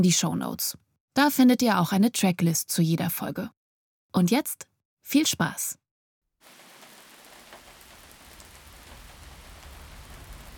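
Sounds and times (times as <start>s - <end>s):
speech: 0.0s - 5.8s
light drizzle hissing: 6.4s - 10.5s
low rumble: 7.8s - 10.5s.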